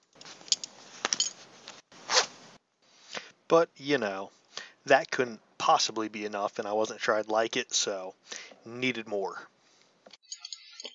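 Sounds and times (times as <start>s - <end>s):
belt and zipper rustle of a man taking off his pants: 0.0s - 2.6s
speech: 3.5s - 9.5s.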